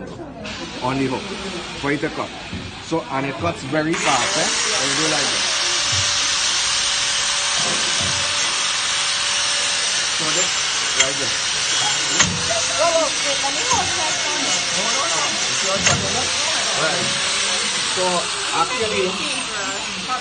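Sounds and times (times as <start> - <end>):
power tool trimming hooves: 0.5 - 20.1.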